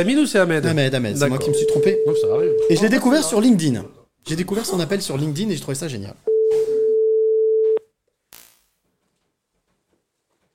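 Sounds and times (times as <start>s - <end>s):
speech: 0.0s - 6.7s
outgoing phone call ringing tone: 1.4s - 2.8s, 6.3s - 7.8s.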